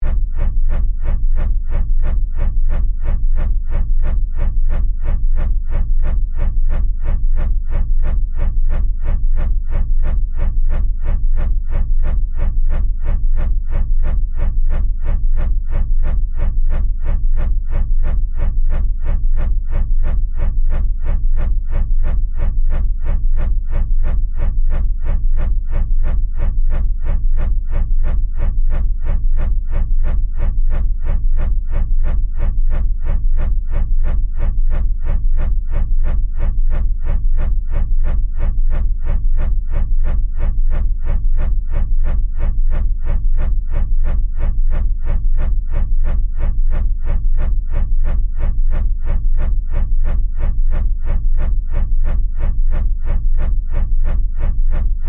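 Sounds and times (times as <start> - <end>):
science fiction fan blade rotating steadily: 0.0 - 55.0.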